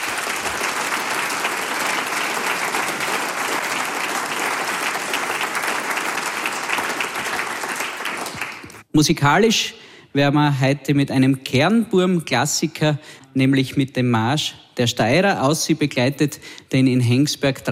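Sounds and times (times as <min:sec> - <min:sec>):
audience applause: 0:00.0 - 0:08.8
speech: 0:09.0 - 0:17.7.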